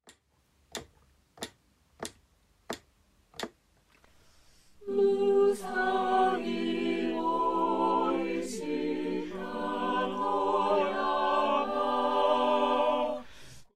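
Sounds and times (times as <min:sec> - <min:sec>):
a cappella count-in: 0:04.8 - 0:13.4.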